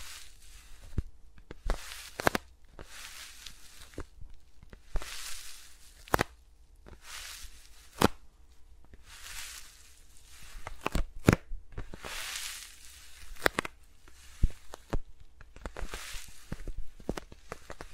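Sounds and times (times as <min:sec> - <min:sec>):
soft brushing swishes of fingers on microphones: 0:00.0 - 0:01.1, 0:01.7 - 0:02.2, 0:02.8 - 0:04.2, 0:04.8 - 0:06.2, 0:06.9 - 0:10.9, 0:12.0 - 0:14.8, 0:15.8 - 0:16.9
low steady hum: 0:00.0 - 0:17.9.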